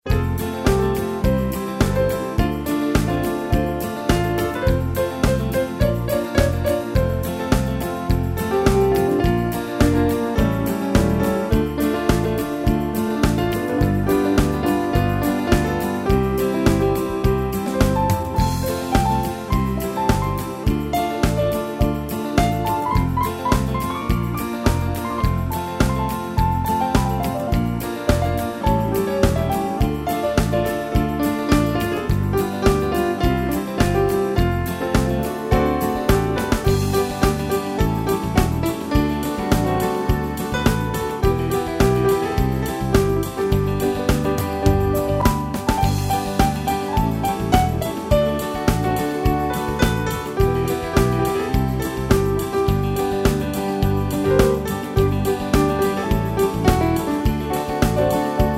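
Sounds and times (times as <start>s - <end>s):
country music medley: 0.0s - 58.5s.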